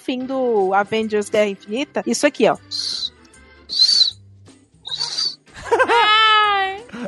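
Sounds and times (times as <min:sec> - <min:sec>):
speech: 0:00.0 - 0:02.9
person imitating whistling breath through a blocked nose: 0:02.7 - 0:03.1, 0:03.7 - 0:04.2, 0:04.9 - 0:05.4
laughter: 0:04.9 - 0:07.0.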